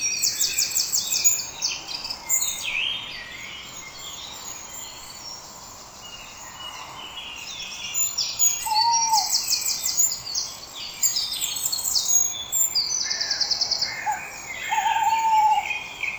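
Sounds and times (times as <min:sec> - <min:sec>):
owls: 0:08.6 - 0:09.4, 0:13.0 - 0:15.8.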